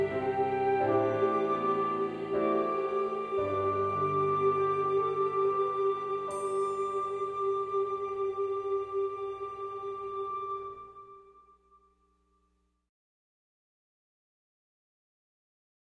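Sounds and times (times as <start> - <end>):
lullaby music: 0.0 - 11.4.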